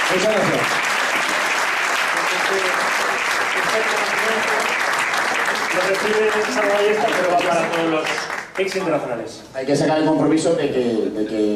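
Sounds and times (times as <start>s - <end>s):
sustained audience applause: 0.0s - 9.1s
speech: 0.1s - 1.3s, 2.3s - 5.0s, 5.6s - 11.5s.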